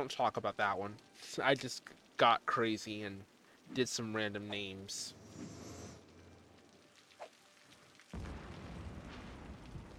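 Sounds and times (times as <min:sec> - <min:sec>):
speech: 0:00.0 - 0:05.5
lightning strike thunder in video game: 0:08.2 - 0:09.9.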